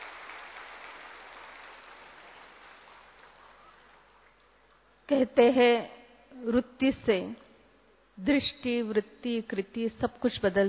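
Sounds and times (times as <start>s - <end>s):
audience clapping to welcome a respected speaker: 0.0s - 4.2s
speech: 5.1s - 7.4s, 8.2s - 10.6s.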